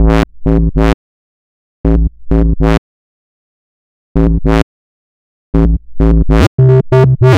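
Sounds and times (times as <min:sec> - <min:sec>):
synth ultra bass: 0:00.0 - 0:01.0, 0:01.8 - 0:02.8, 0:04.2 - 0:04.7, 0:05.5 - 0:07.3.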